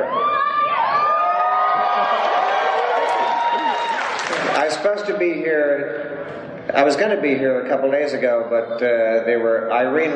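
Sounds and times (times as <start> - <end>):
convention crowd cheering: 0.0 - 5.1
speech: 4.8 - 6.1, 6.7 - 10.1.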